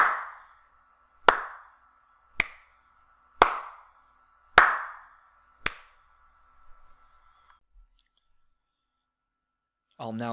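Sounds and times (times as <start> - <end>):
hand clapping test with Blue Snowball condenser microphone: 0.0 - 0.5, 1.2 - 1.8, 2.4 - 2.8, 3.4 - 6.0.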